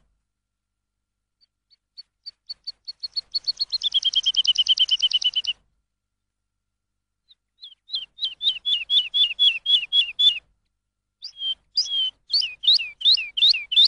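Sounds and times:
lark singing: 0:01.4 - 0:05.6, 0:07.2 - 0:10.5, 0:11.2 - 0:13.8.

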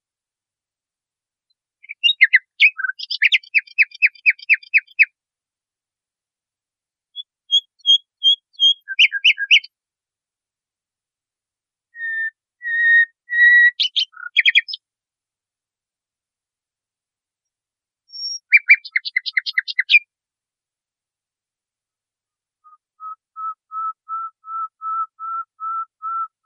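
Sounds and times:
nightingale song: 0:01.8 - 0:05.2, 0:07.2 - 0:09.8, 0:11.9 - 0:14.8, 0:18.1 - 0:20.1, 0:22.6 - 0:26.4.

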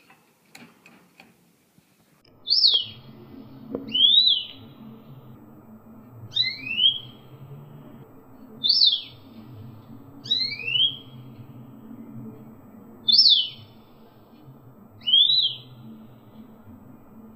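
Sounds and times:
female canary singing: 0:02.3 - 0:17.3.

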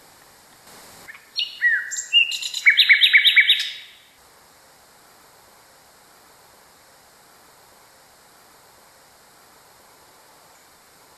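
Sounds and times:
Common nightingale song: 0:00.7 - 0:04.2.

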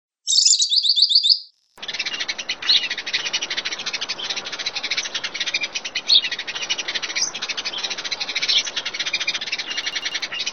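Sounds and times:
bird song: 0:00.2 - 0:10.5.

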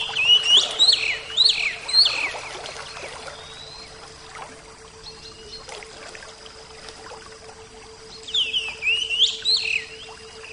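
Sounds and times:
Oriental magpie-robin song: 0:00.0 - 0:04.1, 0:05.0 - 0:05.8, 0:08.0 - 0:10.5.

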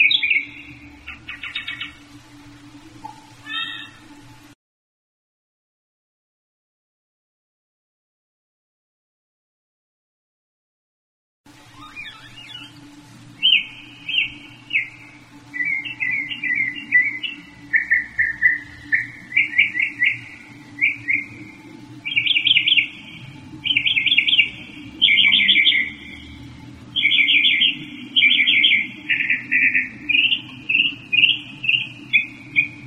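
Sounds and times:
northern mockingbird singing: 0:00.0 - 0:02.1, 0:03.4 - 0:04.2, 0:11.8 - 0:12.8, 0:13.4 - 0:32.8.

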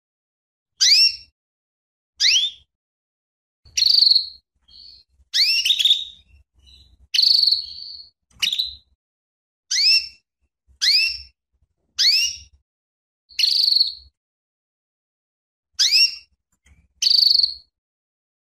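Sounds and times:
female canary calling with sharp sweeping chirps and buzzy notes: 0:00.8 - 0:01.3, 0:02.2 - 0:02.7, 0:03.7 - 0:09.0, 0:09.7 - 0:11.4, 0:12.0 - 0:12.6, 0:13.3 - 0:14.2, 0:15.8 - 0:17.7.

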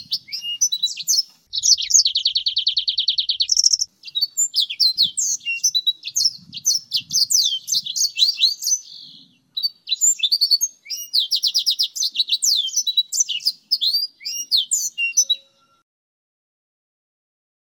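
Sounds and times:
blackthroat and Mozambique songbirds singing in combination: 0:00.0 - 0:15.8.

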